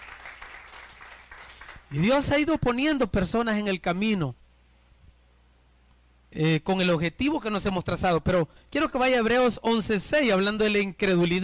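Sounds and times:
loud applause: 0:00.0 - 0:01.9
speech: 0:01.9 - 0:04.4, 0:06.4 - 0:11.4.

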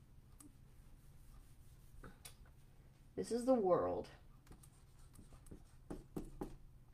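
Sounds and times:
speech: 0:03.2 - 0:04.2
pen strokes drawing an eye: 0:04.5 - 0:06.5.

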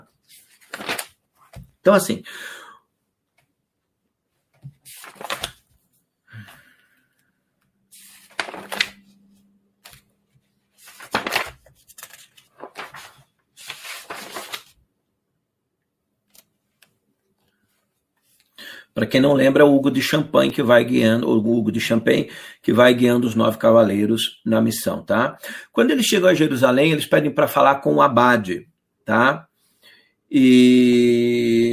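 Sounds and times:
papers being leafed through by hand: 0:00.2 - 0:01.8, 0:04.4 - 0:05.9, 0:07.9 - 0:14.8
speech: 0:01.8 - 0:02.6, 0:19.0 - 0:29.5, 0:30.3 - 0:31.7.

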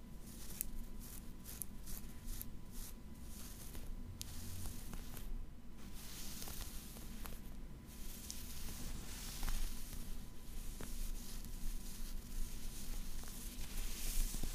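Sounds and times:
fabric scratching and rubbing: 0:00.2 - 0:14.5.

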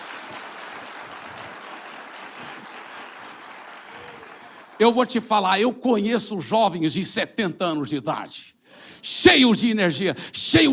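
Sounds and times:
audience applause: 0:00.0 - 0:05.0
speech: 0:04.8 - 0:10.7.

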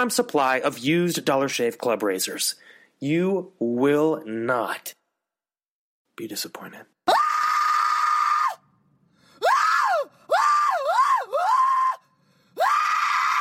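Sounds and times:
speech: 0:00.0 - 0:05.0, 0:06.2 - 0:06.9
woman screaming: 0:07.1 - 0:08.6, 0:09.4 - 0:12.0, 0:12.6 - 0:13.3.

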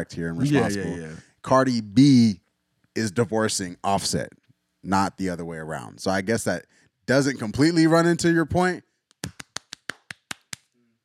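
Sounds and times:
speech: 0:00.0 - 0:02.4, 0:03.0 - 0:09.4
voice hum: 0:00.4 - 0:01.2
hand clapping: 0:09.1 - 0:10.8.

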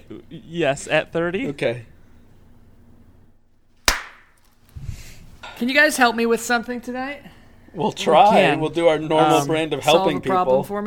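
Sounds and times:
speech: 0:00.1 - 0:01.9, 0:05.6 - 0:10.8
single hand clap: 0:03.9 - 0:04.4.

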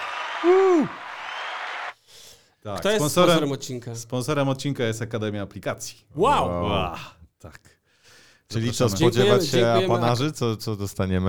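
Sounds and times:
applause: 0:00.0 - 0:02.1
speech: 0:00.4 - 0:01.0, 0:02.6 - 0:07.8, 0:08.5 - 0:11.2.

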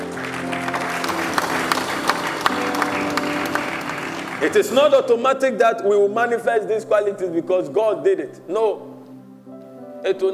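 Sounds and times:
audience clapping: 0:00.0 - 0:05.2
low sustained hum of music or organ tones: 0:00.0 - 0:05.2
speech: 0:04.4 - 0:08.9, 0:10.0 - 0:10.3.

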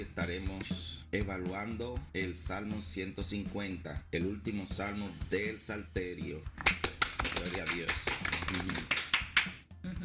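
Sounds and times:
speech: 0:00.0 - 0:09.0
applause: 0:06.6 - 0:09.6.

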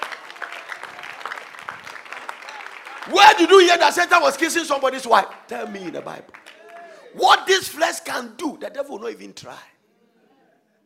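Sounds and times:
audience clapping: 0:00.0 - 0:07.2
speech: 0:03.1 - 0:06.4, 0:07.1 - 0:09.7.

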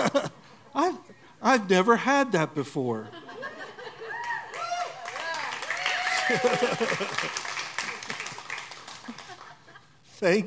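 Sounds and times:
laughter: 0:00.0 - 0:00.4, 0:03.0 - 0:10.0
speech: 0:01.5 - 0:03.2, 0:06.3 - 0:07.5, 0:10.2 - 0:10.4
audience applause: 0:04.1 - 0:09.7.

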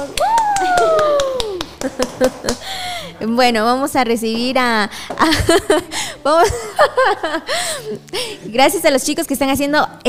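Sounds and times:
scattered hand claps from a small group: 0:00.0 - 0:02.6
speech: 0:01.9 - 0:10.0
laughter: 0:05.4 - 0:08.0.

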